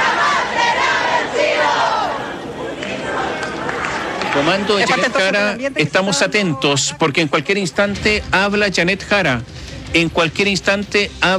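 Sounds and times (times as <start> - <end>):
crowd shouting at an election rally awaiting candidate Yanet Jara: 0.0 - 5.6
speech: 4.4 - 11.3.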